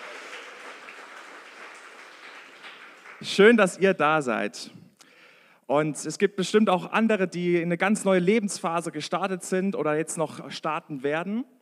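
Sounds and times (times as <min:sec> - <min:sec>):
crowd applauding: 0:00.0 - 0:03.7
speech: 0:03.2 - 0:04.8, 0:05.7 - 0:11.6.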